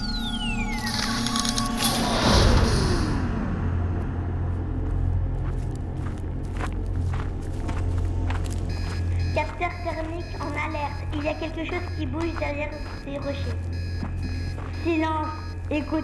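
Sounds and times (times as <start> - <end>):
spacecraft doors opening with hissing descending electronic whine: 0.0 - 3.5
low mechanical hum: 0.0 - 16.0
speech: 11.3 - 13.7, 14.8 - 16.0.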